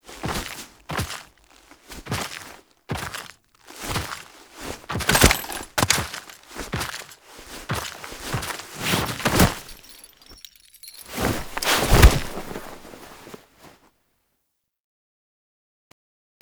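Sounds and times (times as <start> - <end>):
foley sounds: 0.0 - 12.9.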